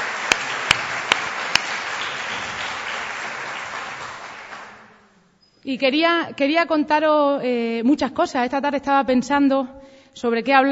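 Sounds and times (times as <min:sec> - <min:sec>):
audience applause: 0:00.0 - 0:05.0
speech: 0:05.6 - 0:10.7.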